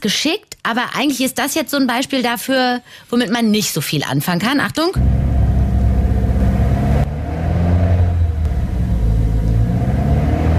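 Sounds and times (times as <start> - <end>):
speech: 0.0 - 5.2
BMW 118i car engine running: 5.0 - 10.5.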